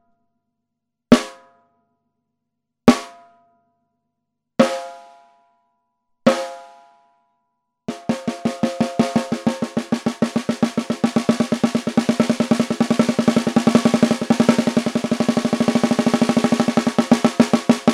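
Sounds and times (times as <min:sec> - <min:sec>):
brass 13X35 snare drum: 0:07.9 - 0:17.9.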